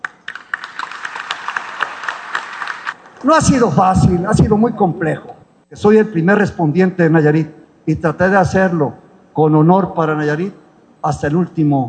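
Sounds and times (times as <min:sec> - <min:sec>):
audience applause: 0:00.0 - 0:03.3
speech: 0:03.2 - 0:11.8.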